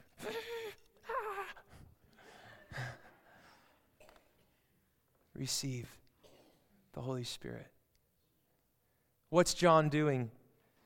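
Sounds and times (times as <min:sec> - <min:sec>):
congregation at a church sermon breathing out together on cue: 0:00.2 - 0:04.0
speech: 0:05.4 - 0:06.0, 0:06.9 - 0:07.8, 0:09.3 - 0:10.4.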